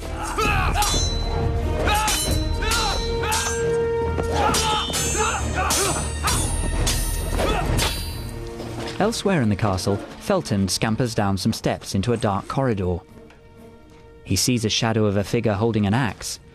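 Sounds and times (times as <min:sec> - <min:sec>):
swords clashing in watery underground passages: 0:00.2 - 0:08.4
speech: 0:09.0 - 0:13.2, 0:14.3 - 0:16.4.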